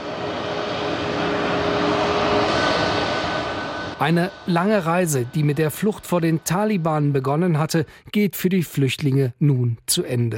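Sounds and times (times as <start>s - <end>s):
passenger aircraft from Islamabad landing in Erfurt, engine roar: 0.0s - 8.1s
speech: 4.0s - 10.3s.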